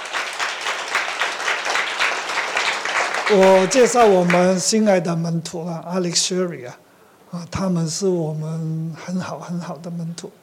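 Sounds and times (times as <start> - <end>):
audience applause: 0.0 - 4.6
speech: 3.3 - 10.4.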